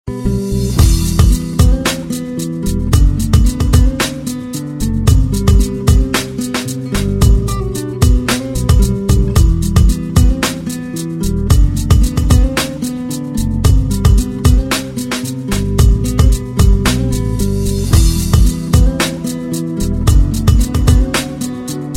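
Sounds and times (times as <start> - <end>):
music beat: 0.1 - 21.9.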